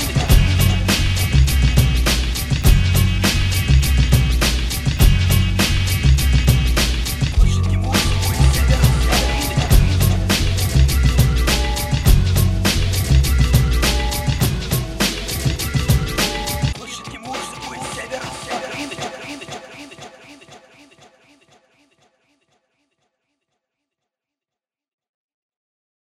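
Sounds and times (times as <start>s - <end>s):
funk beat: 0.0s - 20.1s.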